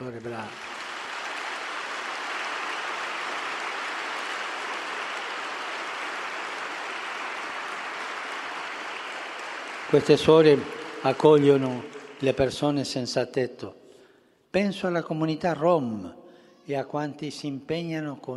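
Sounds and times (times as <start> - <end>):
large crowd applause: 0.0 - 12.8
speech: 0.2 - 0.7, 9.9 - 13.8, 14.5 - 18.3.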